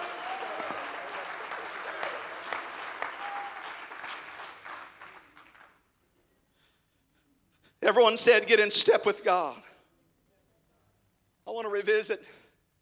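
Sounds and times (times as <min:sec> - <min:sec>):
audience clapping hands: 0:00.0 - 0:06.0
speech: 0:07.9 - 0:09.7, 0:11.6 - 0:12.4.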